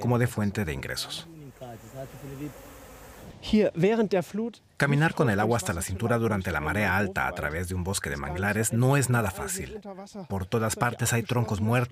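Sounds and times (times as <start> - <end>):
speech: 0.0 - 11.9
bees buzzing around mangrove hives: 1.1 - 3.5.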